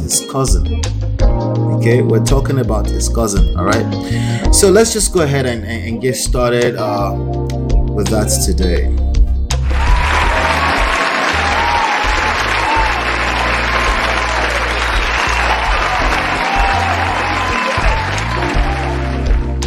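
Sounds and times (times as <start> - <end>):
speech: 0.1 - 9.0
round of applause: 9.6 - 19.6.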